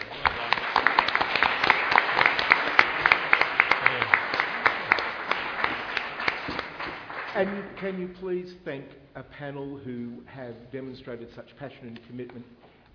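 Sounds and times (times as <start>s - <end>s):
audience applause: 0.0s - 7.9s
speech: 7.4s - 12.9s.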